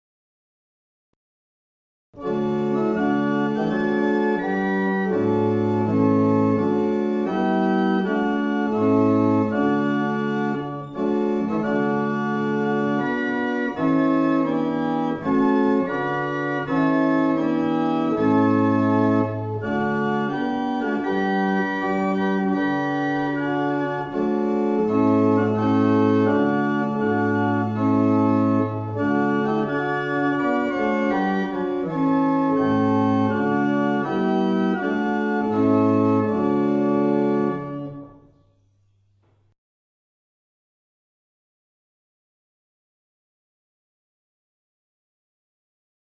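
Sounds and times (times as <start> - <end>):
barrel organs at St Olaves: 2.2 - 38.4.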